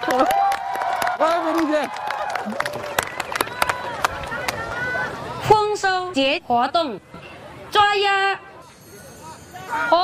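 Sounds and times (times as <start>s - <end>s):
clapping: 0.0s - 4.8s
speech: 0.1s - 0.4s, 1.2s - 2.9s, 6.1s - 8.4s, 9.7s - 10.0s.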